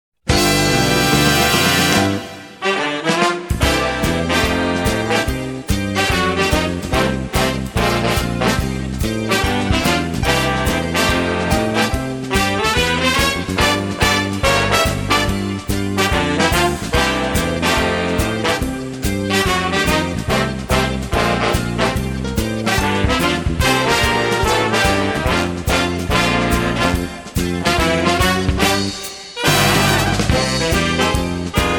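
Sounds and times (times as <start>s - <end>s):
swing music: 0.2s - 31.7s.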